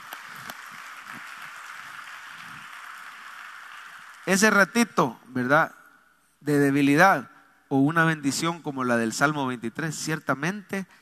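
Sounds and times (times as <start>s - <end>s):
audience applauding: 0.0s - 4.6s
speech: 4.3s - 5.8s, 6.4s - 11.0s.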